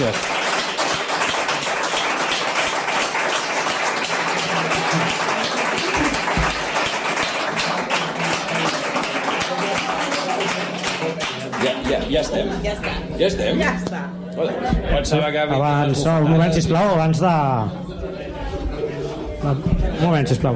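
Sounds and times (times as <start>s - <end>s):
loud audience applause: 0.0s - 13.0s
speech: 12.1s - 17.8s, 19.4s - 20.5s.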